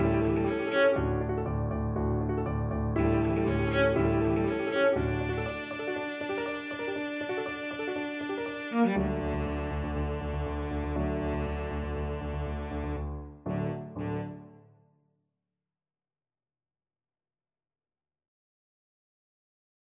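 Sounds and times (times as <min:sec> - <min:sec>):
cello playing: 0:00.0 - 0:14.6.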